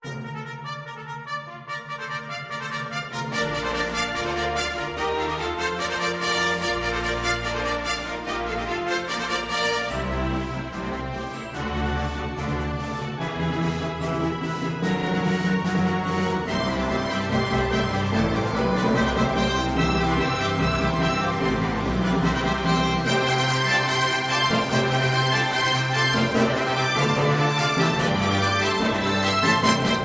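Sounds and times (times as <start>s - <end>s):
fanfare: 0.2s - 30.0s.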